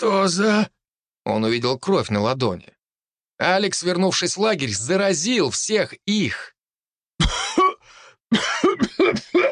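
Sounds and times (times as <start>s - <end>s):
speech: 0.0s - 0.7s, 1.3s - 2.7s, 3.4s - 6.5s, 8.3s - 9.5s
man coughing hard: 7.2s - 9.5s.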